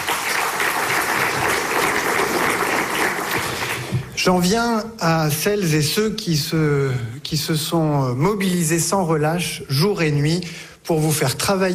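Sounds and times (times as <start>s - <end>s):
audience applause: 0.0s - 4.2s
speech: 4.2s - 11.7s.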